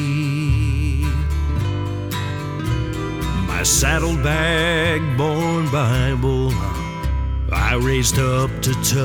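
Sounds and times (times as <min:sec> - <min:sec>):
acoustic contemporary country western full band playing: 0:00.0 - 0:08.9.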